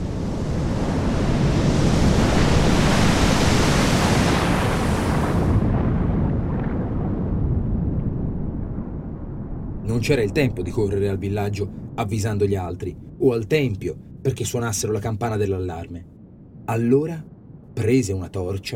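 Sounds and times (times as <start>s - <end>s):
sea waves with huge wave approaching: 0.0s - 8.0s
speech: 10.0s - 16.1s, 16.7s - 18.7s.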